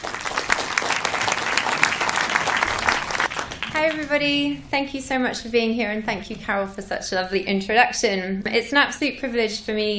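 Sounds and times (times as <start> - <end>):
audience applause welcoming a speaker at a Center event: 0.0 - 4.0
speech: 3.8 - 9.9.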